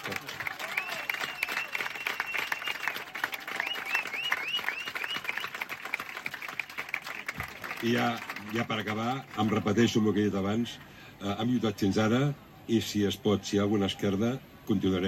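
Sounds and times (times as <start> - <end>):
loud audience applause: 0.0 - 10.0
speech: 7.8 - 15.0.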